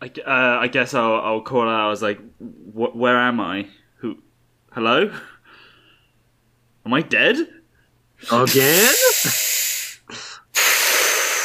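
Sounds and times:
speech: 0.0s - 5.3s, 6.8s - 7.6s, 8.2s - 9.4s
long airy breath drawn in: 8.3s - 11.4s
strong hissing exhale: 8.3s - 11.4s.

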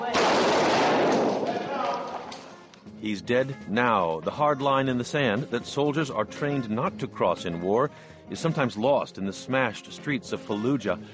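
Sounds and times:
gunfire in recorded combat video: 0.1s - 1.7s
speech: 3.0s - 11.1s.

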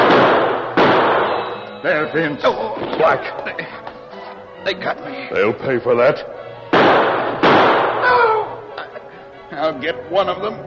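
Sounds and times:
gunshots in a radio drama shootout in a cave: 0.0s - 1.6s, 6.7s - 8.3s
speech: 1.8s - 4.0s, 4.6s - 7.2s, 9.5s - 10.6s.

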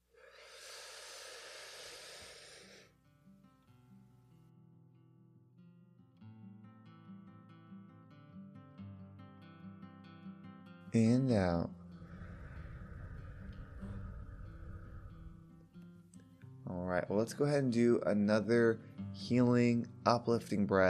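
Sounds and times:
deep inhale during a guided breathing exercise: 0.0s - 3.0s, 11.6s - 16.2s
speech: 10.9s - 11.8s, 17.1s - 20.8s.

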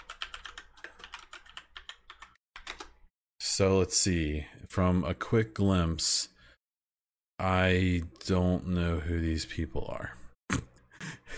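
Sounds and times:
typing on a computer keyboard: 0.0s - 3.0s
speech: 3.6s - 6.3s, 7.4s - 10.2s.

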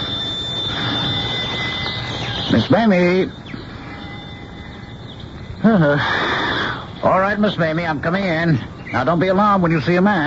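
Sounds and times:
old-fashioned doorbell ringing: 0.0s - 8.2s
speech: 2.6s - 3.5s, 5.6s - 6.2s, 7.0s - 10.2s.

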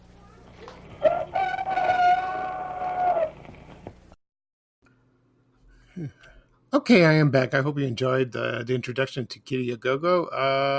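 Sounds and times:
rooster crowing: 1.0s - 3.4s
speech: 6.8s - 10.7s.

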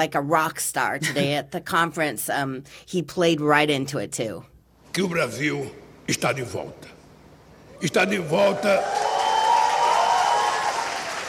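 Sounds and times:
speech: 0.0s - 7.0s, 7.8s - 9.1s
crowd applause: 7.9s - 11.2s.

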